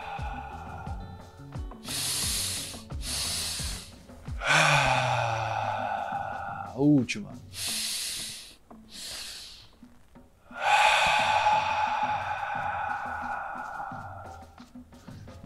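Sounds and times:
long exhale with a faint tonal whistle: 0:00.0 - 0:06.7, 0:07.6 - 0:09.9, 0:10.5 - 0:14.7
slow deep breathing exercise: 0:00.0 - 0:06.8, 0:07.5 - 0:15.4
speech: 0:06.8 - 0:07.6.

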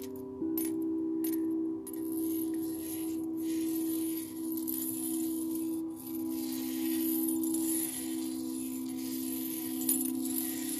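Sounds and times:
singing bowl ringing: 0:00.0 - 0:10.7
sparkling metallic shimmer: 0:00.0 - 0:10.7.

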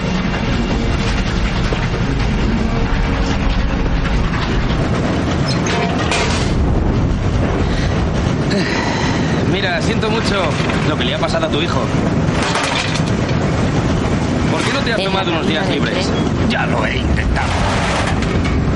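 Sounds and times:
brief metallic squeals: 0:00.0 - 0:06.6
clattering train wheels: 0:00.0 - 0:15.6, 0:16.2 - 0:18.7
steam locomotive train pulling away from a station: 0:00.0 - 0:18.7
speech: 0:09.9 - 0:12.6, 0:14.8 - 0:18.5.

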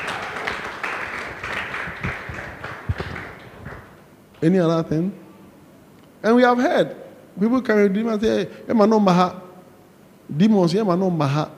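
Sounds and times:
audience clapping: 0:00.0 - 0:04.1
speech: 0:04.4 - 0:05.2, 0:06.2 - 0:09.4, 0:10.3 - 0:11.5.

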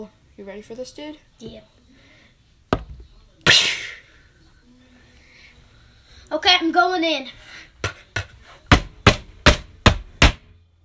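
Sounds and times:
speech: 0:00.0 - 0:01.8, 0:03.5 - 0:03.8, 0:06.3 - 0:07.7
axe smashing through a wooden door: 0:08.7 - 0:10.5.

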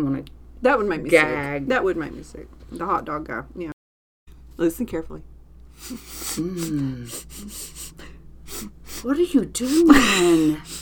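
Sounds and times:
speech: 0:00.0 - 0:03.8, 0:04.6 - 0:07.8, 0:08.6 - 0:10.8
person sniffing things: 0:05.7 - 0:10.8
brief voiced gasp or moan: 0:05.8 - 0:10.8.

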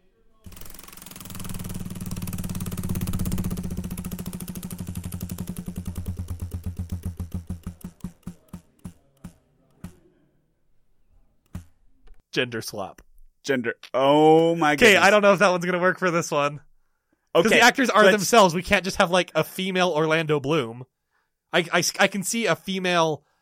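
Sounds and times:
giant prize wheel spinning: 0:00.5 - 0:10.0
speech: 0:12.4 - 0:16.7, 0:17.3 - 0:20.9, 0:21.5 - 0:23.3.

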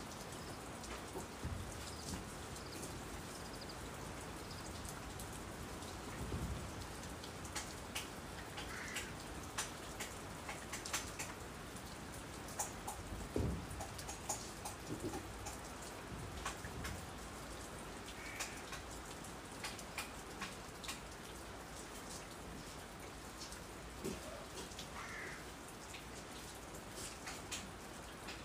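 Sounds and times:
rain falling steadily under the eaves: 0:00.0 - 0:28.4
rain drips and taps under the eaves: 0:00.1 - 0:02.9, 0:06.9 - 0:17.0, 0:18.1 - 0:21.4, 0:23.0 - 0:28.4.

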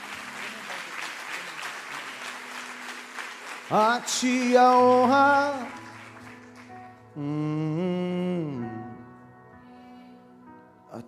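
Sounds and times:
audience applause: 0:00.0 - 0:07.2
speech: 0:03.7 - 0:05.8, 0:07.2 - 0:07.9.

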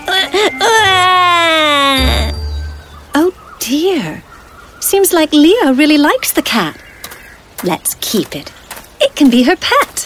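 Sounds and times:
baby crying: 0:00.1 - 0:02.3
speech: 0:04.9 - 0:06.8, 0:07.6 - 0:08.6, 0:09.2 - 0:10.0.

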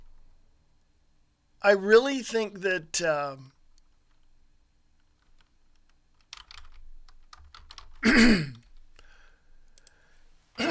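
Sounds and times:
speech: 0:01.6 - 0:03.6
keyboard clicks and typing: 0:06.3 - 0:08.0
throat clearing to clear phlegm: 0:08.0 - 0:08.6.

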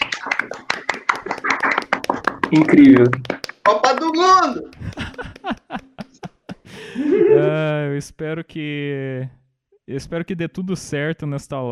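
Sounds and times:
applause, hands clapping: 0:00.0 - 0:06.6
laughter: 0:00.0 - 0:07.7
speech: 0:02.5 - 0:04.8, 0:05.4 - 0:05.9, 0:07.2 - 0:11.7.

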